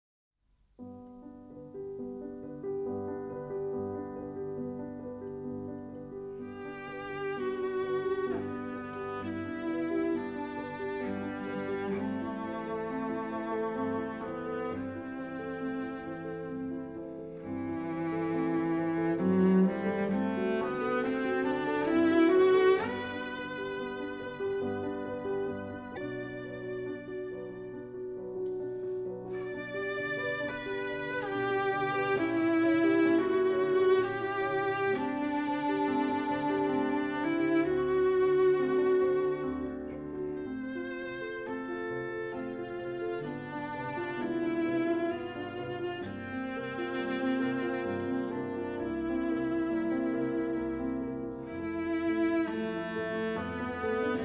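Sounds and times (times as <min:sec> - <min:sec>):
two pianos: 0:00.5 - 0:54.2
cello: 0:00.8 - 0:54.2.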